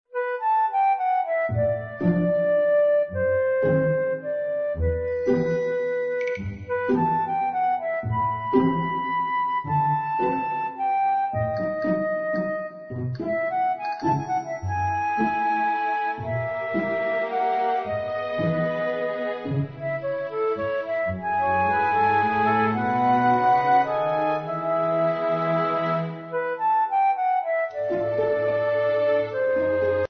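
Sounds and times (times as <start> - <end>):
orchestral children's music: 0.1 - 30.0.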